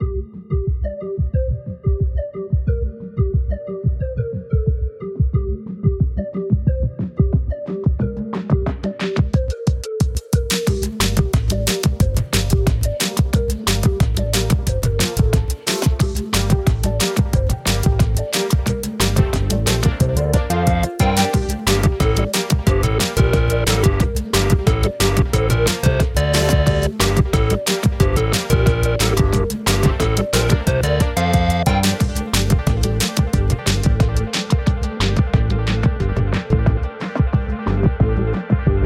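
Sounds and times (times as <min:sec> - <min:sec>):
music: 0:00.0 - 0:38.8.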